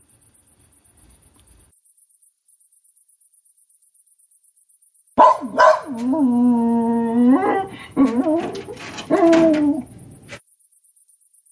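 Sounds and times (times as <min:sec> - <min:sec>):
German shepherd puppy barking: 0:05.2 - 0:06.0
German shepherd puppy whining: 0:05.6 - 0:09.9.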